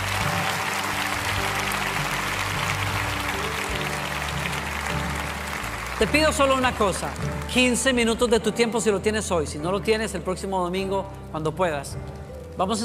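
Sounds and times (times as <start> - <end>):
audience applause: 0.0 - 8.0
speech: 6.0 - 12.8.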